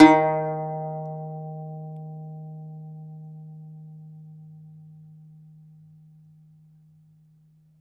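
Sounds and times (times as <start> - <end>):
second domra plucked strings: 0.0 - 1.8.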